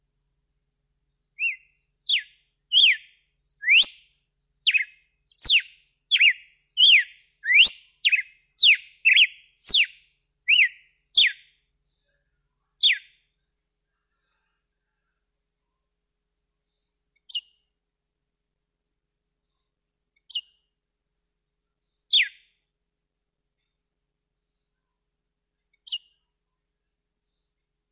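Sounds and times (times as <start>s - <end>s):
red-cowled cardinal whistled song: 1.4s - 11.5s, 12.8s - 13.2s, 22.1s - 22.5s.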